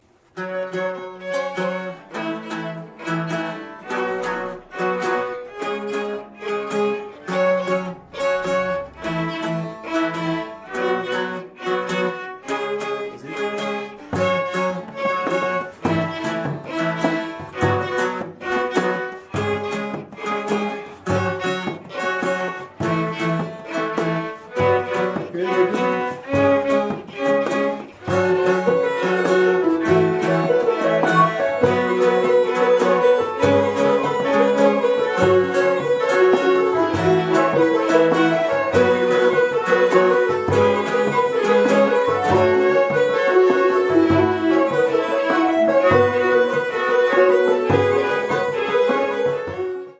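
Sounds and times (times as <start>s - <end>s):
rhythm track: 0.8s - 49.9s.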